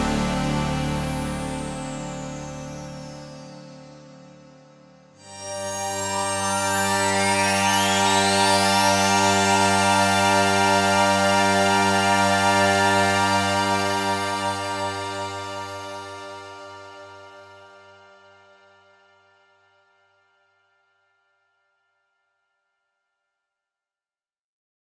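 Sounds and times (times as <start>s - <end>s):
Quantec QRS strings: 0.0s - 17.0s.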